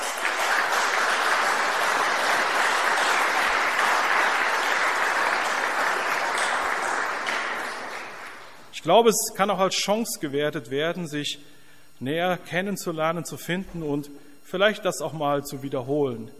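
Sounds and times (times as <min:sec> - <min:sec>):
crowd applause: 0:00.0 - 0:08.7
speech: 0:08.8 - 0:16.3.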